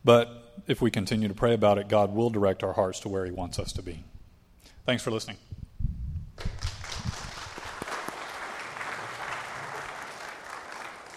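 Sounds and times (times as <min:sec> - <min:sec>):
speech: 0:00.0 - 0:04.1, 0:04.8 - 0:05.6
audience applause: 0:06.6 - 0:11.1.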